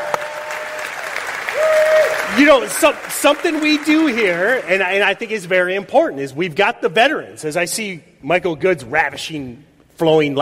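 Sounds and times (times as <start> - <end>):
audience applause: 0.0 - 5.3
speech: 2.4 - 10.4.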